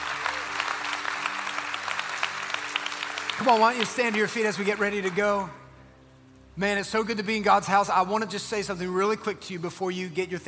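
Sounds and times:
audience clapping: 0:00.0 - 0:05.6
speech: 0:03.4 - 0:05.6, 0:06.6 - 0:10.4.

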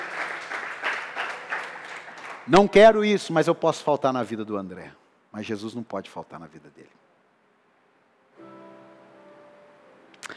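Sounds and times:
audience applause: 0:00.0 - 0:03.0
speech: 0:02.5 - 0:07.0.

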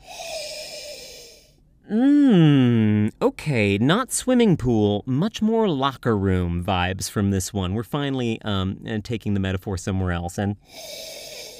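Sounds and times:
person sniffing a drink: 0:00.0 - 0:01.6, 0:10.6 - 0:11.5
speech: 0:01.9 - 0:02.2, 0:03.4 - 0:11.3.

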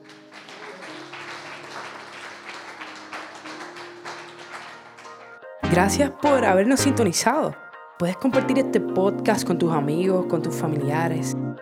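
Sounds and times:
audience applause: 0:00.0 - 0:05.5
speech: 0:05.7 - 0:11.6.

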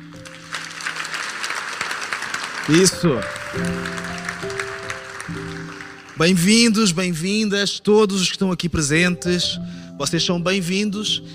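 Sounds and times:
crowd applause: 0:00.0 - 0:07.0
speech: 0:02.7 - 0:04.5, 0:06.2 - 0:11.3.

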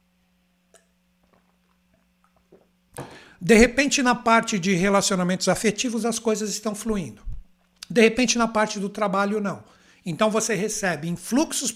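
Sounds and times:
low steady hum: 0:00.0 - 0:11.7
person sipping water: 0:00.7 - 0:03.3
breathy burst: 0:03.0 - 0:03.4
speech: 0:03.4 - 0:07.3, 0:07.9 - 0:11.7.

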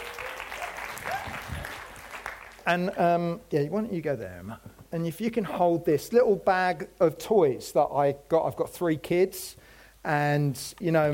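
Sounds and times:
audience round of applause: 0:00.0 - 0:02.7
speech: 0:02.6 - 0:11.1.

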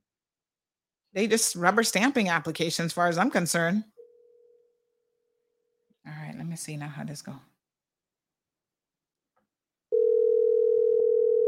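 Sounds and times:
speech: 0:01.1 - 0:04.0, 0:06.6 - 0:07.5
telephone dial tone: 0:09.9 - 0:11.4.

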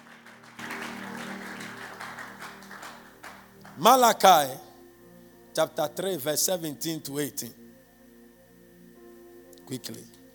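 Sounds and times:
crowd applauding: 0:00.0 - 0:04.0
speech: 0:03.8 - 0:04.6, 0:05.6 - 0:07.6, 0:09.7 - 0:10.2.

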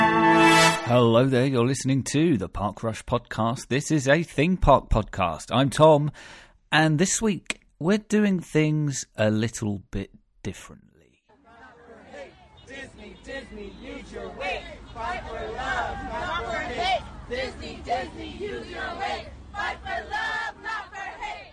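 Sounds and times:
speech: 0:00.9 - 0:10.9
Disney World employees in Florida chanting in protest: 0:11.3 - 0:21.5
babble: 0:11.3 - 0:21.5.

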